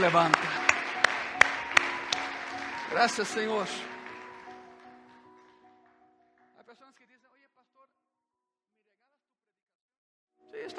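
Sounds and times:
speech: 0.0 - 0.5, 2.9 - 3.9
applause: 0.0 - 7.1.

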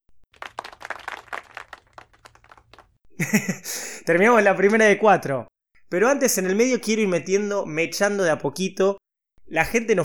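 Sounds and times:
applause: 0.3 - 2.9
laughter: 3.2 - 4.4
speech: 3.2 - 10.0.

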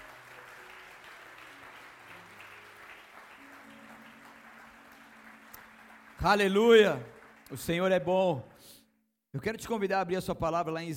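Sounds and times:
audience applause: 0.0 - 8.5
speech: 6.2 - 10.9.

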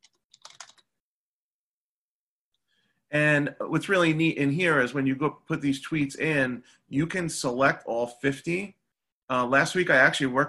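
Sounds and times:
typing on a computer keyboard: 0.0 - 0.9
speech: 3.1 - 10.4.

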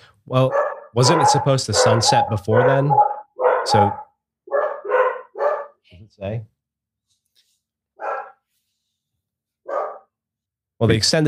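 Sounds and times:
speech: 0.2 - 4.0, 6.2 - 6.5, 10.8 - 11.2
female dog barking: 0.4 - 5.8, 8.0 - 8.4, 9.6 - 10.1.

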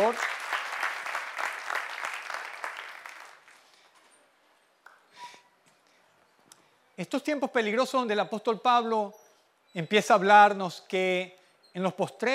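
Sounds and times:
audience applause: 0.0 - 3.7
speech: 0.1 - 0.4, 7.0 - 12.3.

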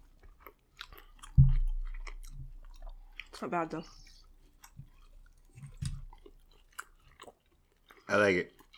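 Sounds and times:
chewing tough chicken: 0.0 - 8.7
speech: 3.4 - 4.0, 8.1 - 8.6.

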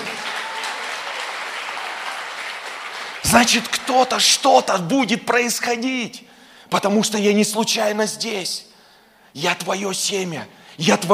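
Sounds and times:
audience applause: 0.0 - 4.3
speech: 3.3 - 8.7, 9.3 - 11.1.

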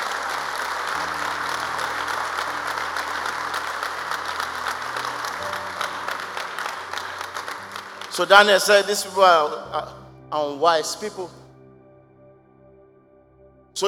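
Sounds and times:
audience applause: 0.0 - 8.7
low sustained organ or keyboard tones: 0.0 - 13.8
speech: 8.2 - 11.4.

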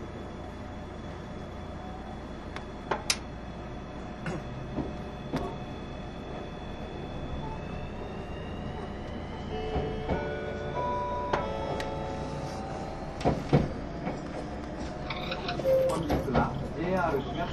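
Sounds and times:
train rumble: 0.0 - 17.5
squealing metallic tones: 15.0 - 16.1.

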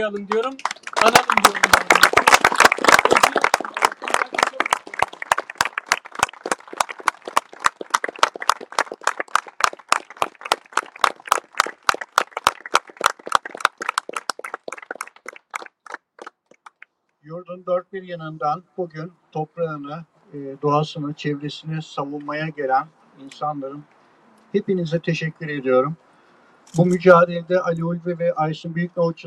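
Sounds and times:
speech: 0.0 - 2.2, 17.5 - 26.0, 26.7 - 29.2
crowd applauding at a memorial: 0.0 - 16.8.

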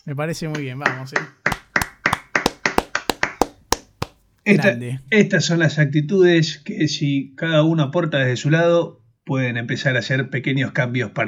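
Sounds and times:
speech: 0.0 - 1.4, 4.5 - 11.2
small round of applause: 0.5 - 4.8.

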